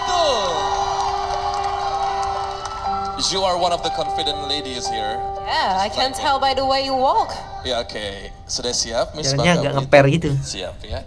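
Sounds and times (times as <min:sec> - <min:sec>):
pageant audience applause: 0:00.0 - 0:04.4
speech: 0:03.2 - 0:11.0.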